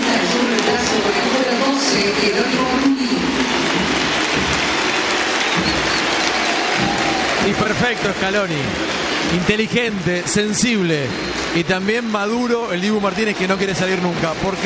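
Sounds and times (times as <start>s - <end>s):
stadium crowd applauding: 0.0s - 14.6s
speech: 7.5s - 14.6s.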